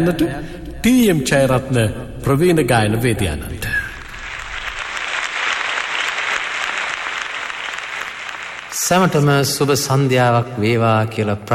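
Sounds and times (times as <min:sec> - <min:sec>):
speech: 0:00.0 - 0:03.7, 0:08.9 - 0:11.5
audience applause welcoming a veteran singer at an evening concert: 0:04.0 - 0:09.3.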